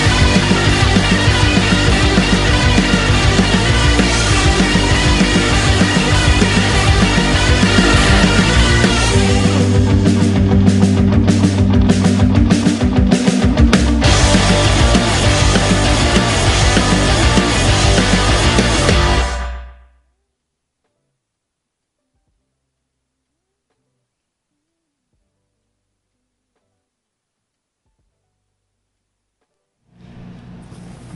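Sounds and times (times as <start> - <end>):
garage psych rock: 0.0 - 19.9.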